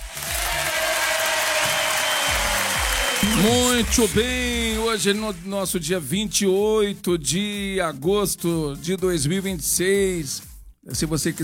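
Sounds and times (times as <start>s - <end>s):
applause: 0.0s - 5.5s
speech: 3.2s - 11.4s.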